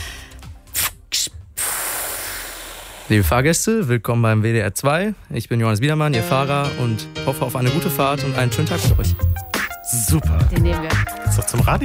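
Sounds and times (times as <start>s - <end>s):
voice imitating the pneumatic hiss of a bus lowering: 0.0s - 3.2s
speech: 3.1s - 9.4s, 10.1s - 11.8s.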